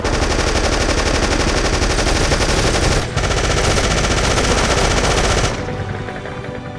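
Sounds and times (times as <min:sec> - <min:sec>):
machine gun fire: 0:00.0 - 0:06.0.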